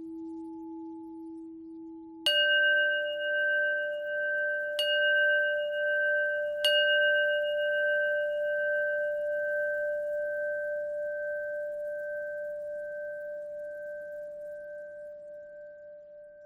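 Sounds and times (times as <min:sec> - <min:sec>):
bell twist: 0:02.3 - 0:14.9.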